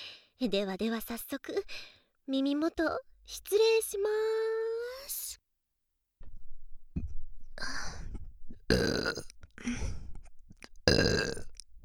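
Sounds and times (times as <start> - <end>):
speech: 0.4 - 5.1
woman burping close-up binaural: 8.7 - 9.4, 10.9 - 11.6.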